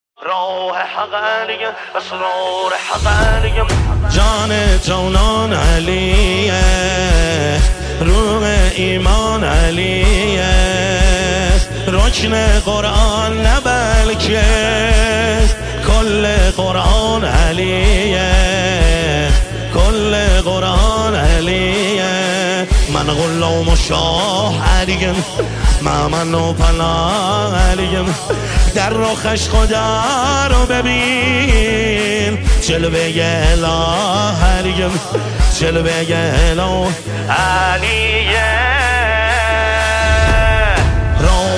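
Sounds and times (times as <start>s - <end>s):
devotional singing: 0.2s - 41.5s.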